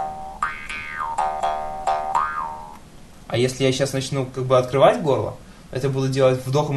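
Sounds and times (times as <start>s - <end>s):
jaw harp played wrongly with a constricted throat: 0.0s - 2.8s
speech: 3.3s - 6.7s.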